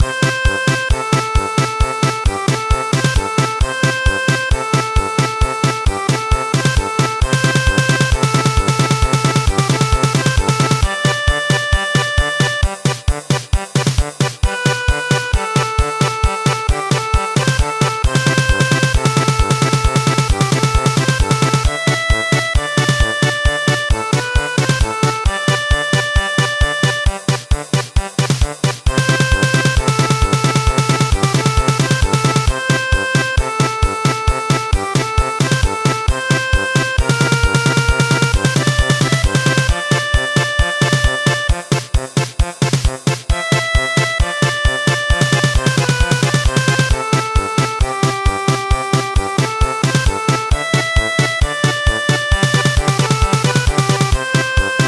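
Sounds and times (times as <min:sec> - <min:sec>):
German polka music: 0:00.0 - 0:54.8.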